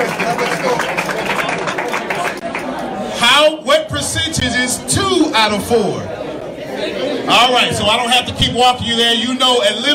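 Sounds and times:
audience round of applause: 0.0 - 2.8
crowd chatter: 0.0 - 9.9
speech: 4.4 - 6.1, 6.9 - 9.9.

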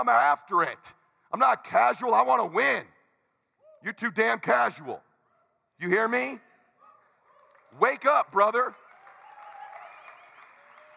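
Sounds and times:
speech: 0.0 - 3.0, 3.8 - 5.1, 5.8 - 6.5, 7.7 - 8.8
audience applause: 7.5 - 10.9.

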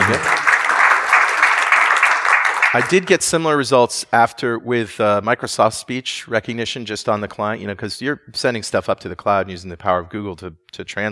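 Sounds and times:
hands clapping: 0.0 - 3.4
speech: 0.1 - 0.3, 2.8 - 11.1.

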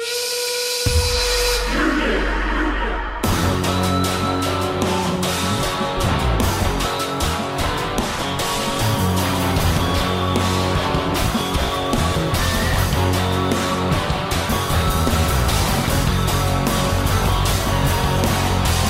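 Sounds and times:
shrill sustained steam whistle blowing: 0.0 - 2.1
driving rock theme with pounding drums and heavy guitars: 0.8 - 18.8.

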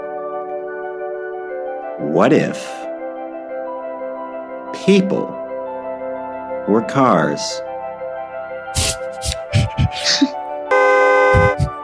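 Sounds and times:
speech: 2.0 - 2.9, 4.8 - 5.4, 6.6 - 7.7
small horn honking with a nasal brassy tone: 10.7 - 11.8.

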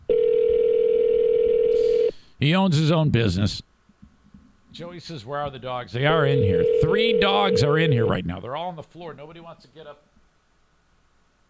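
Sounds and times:
telephone dialing tones: 0.1 - 2.1, 6.3 - 8.1
speech: 2.4 - 3.7, 4.7 - 10.1.

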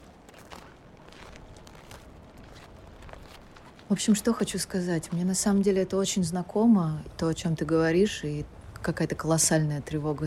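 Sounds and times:
footsteps crunching on snow: 0.0 - 5.3
speech: 3.9 - 10.2.

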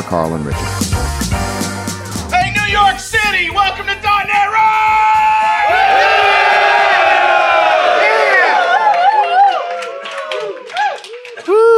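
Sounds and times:
speech: 0.0 - 1.1, 2.7 - 5.2
live crowd cheering and whooping: 4.7 - 11.7.

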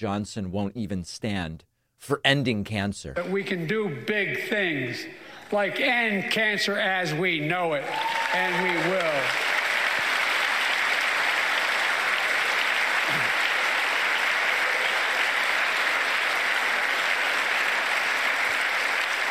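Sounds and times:
speech: 0.0 - 9.5
audience applause: 7.8 - 19.2.

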